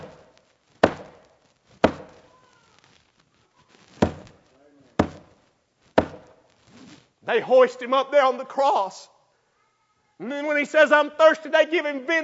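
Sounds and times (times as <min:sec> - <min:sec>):
hammer striking a nail: 0:00.0 - 0:02.2, 0:04.0 - 0:04.4, 0:05.0 - 0:05.4, 0:06.0 - 0:06.4
speech: 0:07.3 - 0:09.1, 0:10.2 - 0:12.2.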